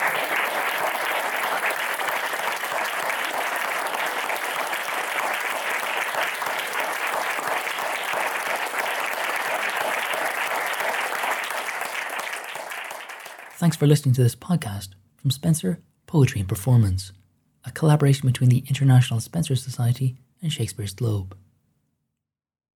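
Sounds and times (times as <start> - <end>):
audience applause at a poetry roundtable at Shakespeare's Globe: 0.0 - 13.6
speech: 13.6 - 21.4.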